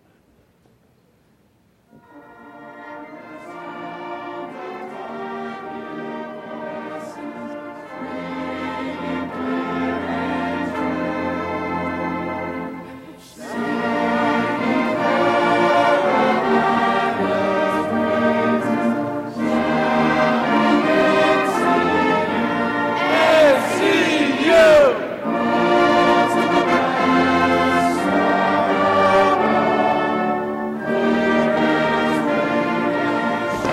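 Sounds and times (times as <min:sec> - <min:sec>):
large crowd singing a university alma mater at a memorial gathering: 0:02.8 - 0:33.7.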